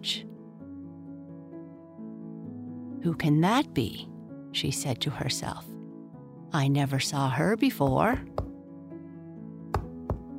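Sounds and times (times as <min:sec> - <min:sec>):
speech: 0:00.0 - 0:00.3, 0:03.0 - 0:05.8, 0:06.5 - 0:08.4
knock on a cottage door: 0:07.8 - 0:08.6, 0:09.7 - 0:10.3.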